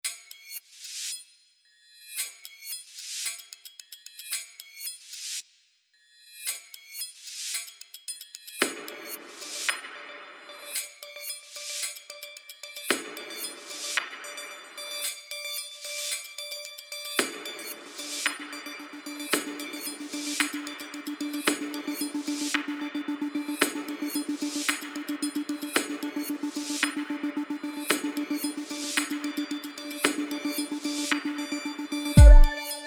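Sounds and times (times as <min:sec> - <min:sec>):
small rhythmic suspense music: 0:09.9 - 0:32.8.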